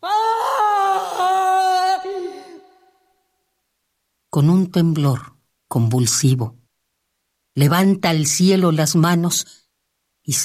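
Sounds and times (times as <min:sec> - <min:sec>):
terrible anguished human scream: 0:00.0 - 0:03.1
speech: 0:04.4 - 0:06.6, 0:07.6 - 0:09.6, 0:10.2 - 0:10.4.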